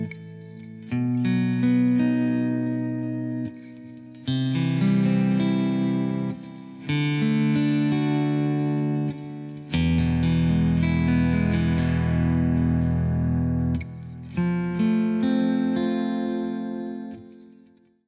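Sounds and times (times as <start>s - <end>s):
clean metal guitar: 0.0s - 17.7s.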